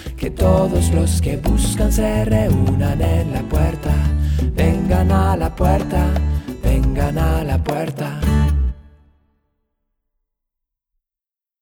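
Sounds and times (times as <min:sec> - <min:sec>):
song: 0:00.0 - 0:09.0.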